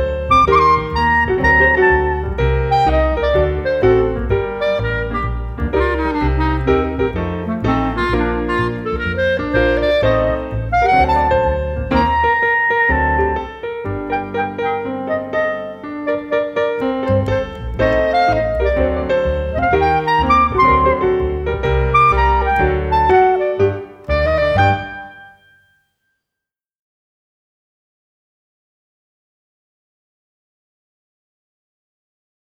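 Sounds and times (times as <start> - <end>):
instrumental music: 0.0 - 25.8.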